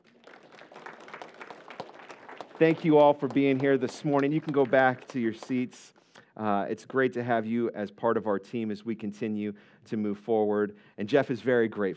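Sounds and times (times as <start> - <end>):
crowd clapping hands: 0.0 - 5.8
speech: 2.6 - 11.9.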